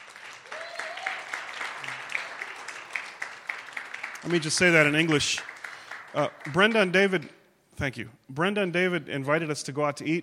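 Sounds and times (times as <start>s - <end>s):
audience applause: 0.0s - 6.9s
speech: 4.2s - 5.5s, 6.1s - 10.2s.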